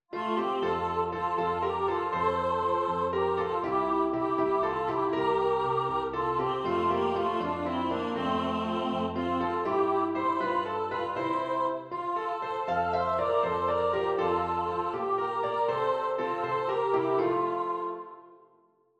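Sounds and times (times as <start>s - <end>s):
music: 0.1s - 18.9s.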